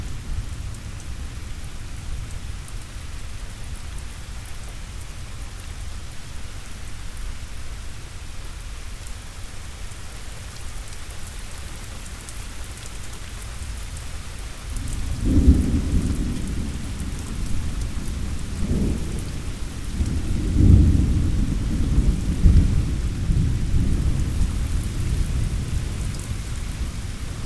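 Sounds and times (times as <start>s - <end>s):
thunderstorm: 14.8s - 27.4s.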